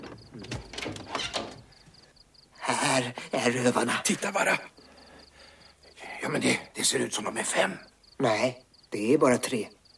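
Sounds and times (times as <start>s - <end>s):
door creaking open: 0.0s - 1.8s
speech: 2.9s - 4.8s, 6.2s - 9.8s.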